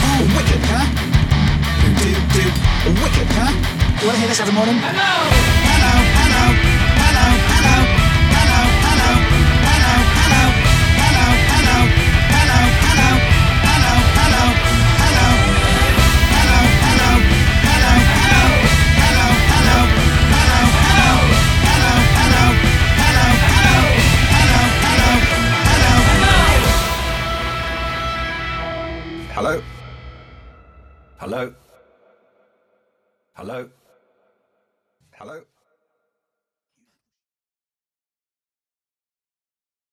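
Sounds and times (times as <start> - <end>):
thrash metal mix: 0.0 - 31.2.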